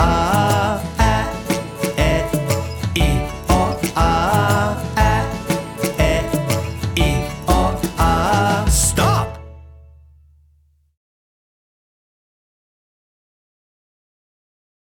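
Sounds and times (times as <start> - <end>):
phonics song: 0.0 - 10.0.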